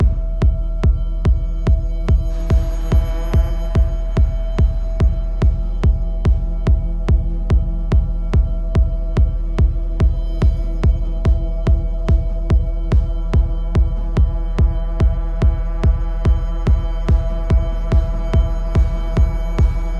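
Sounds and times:
neutral music: 0.0s - 19.9s.

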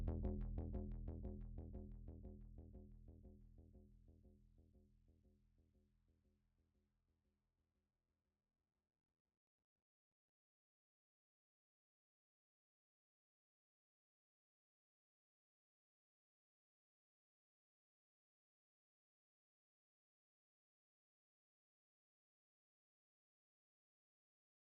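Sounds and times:
bass: 0.0s - 5.1s.

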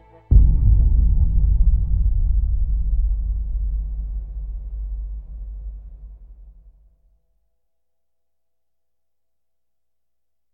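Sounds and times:
victory music: 0.0s - 6.5s.

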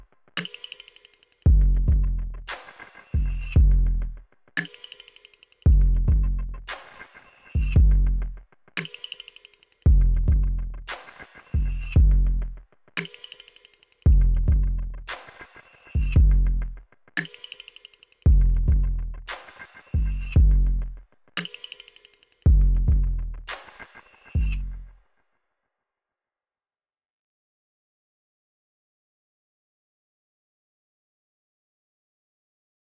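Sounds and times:
drums and percussion: 0.0s - 25.2s.

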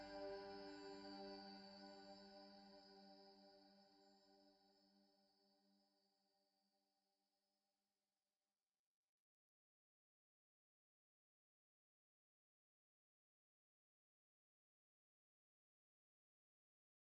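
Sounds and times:
tonal ambient music in G: 0.0s - 5.0s.

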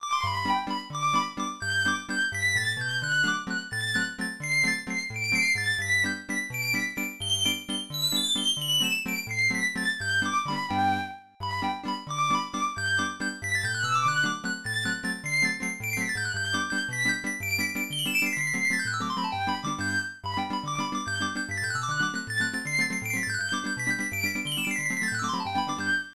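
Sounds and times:
fiddle tune: 0.0s - 26.1s.

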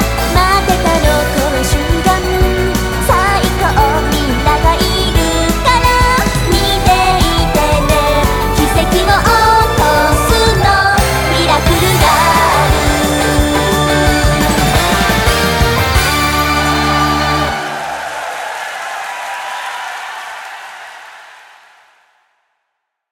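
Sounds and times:
opening background music: 0.0s - 18.1s.

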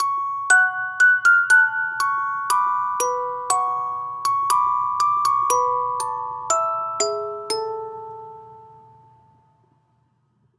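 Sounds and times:
music box: 0.0s - 10.0s.

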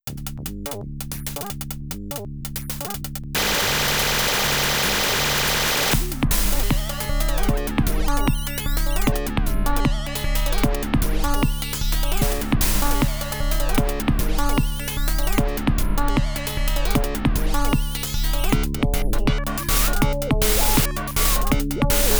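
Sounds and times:
FM acid synth: 3.4s - 22.1s.

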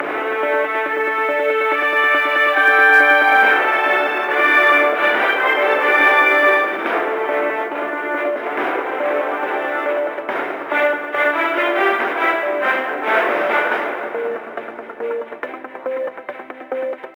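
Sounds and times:
news jingle loop: 0.0s - 17.0s.

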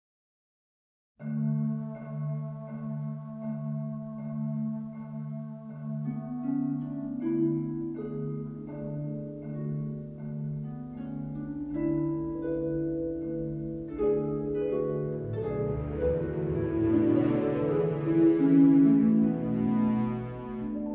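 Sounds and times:
world music: 1.4s - 20.9s.

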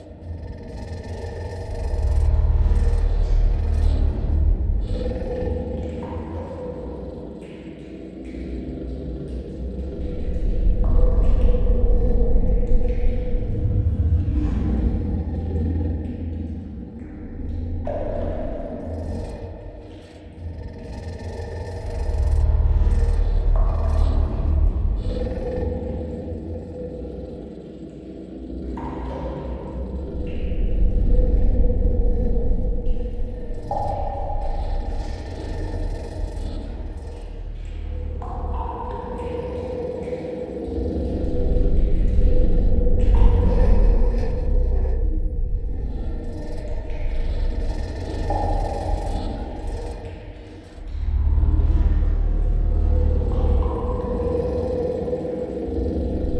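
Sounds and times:
ambience: 0.0s - 56.3s.

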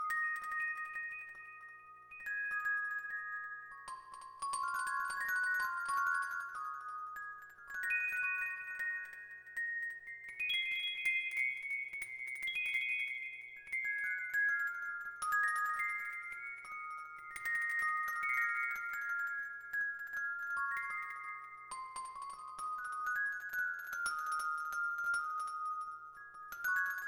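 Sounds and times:
spirit chimes: 0.0s - 27.0s.

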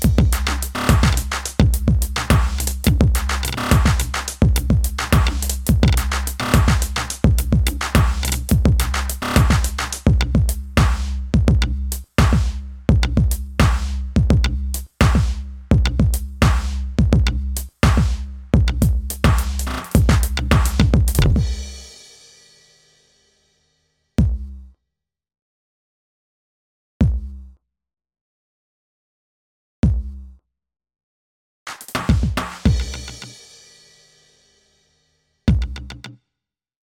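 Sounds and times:
drums and percussion: 0.0s - 23.2s, 24.2s - 24.5s, 27.0s - 27.4s, 29.8s - 30.2s, 31.7s - 34.7s, 35.5s - 36.1s.

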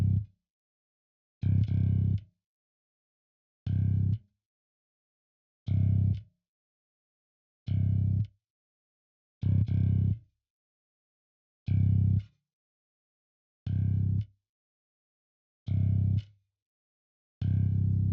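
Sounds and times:
bass: 0.0s - 0.3s, 1.4s - 2.3s, 3.7s - 4.2s, 5.7s - 6.3s, 7.7s - 8.3s, 9.4s - 10.2s, 11.7s - 12.3s, 13.7s - 14.3s, 15.7s - 16.3s, 17.4s - 18.1s.

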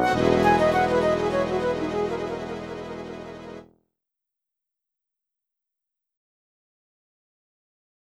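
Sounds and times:
languorous waltz: 0.0s - 3.6s.

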